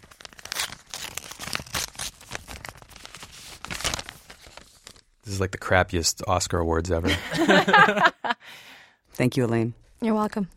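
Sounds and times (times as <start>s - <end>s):
envelope paper crinkling and tearing in front of a microphone: 0.0s - 5.1s
speech: 5.3s - 8.2s, 9.2s - 10.5s
laughter: 7.0s - 8.4s.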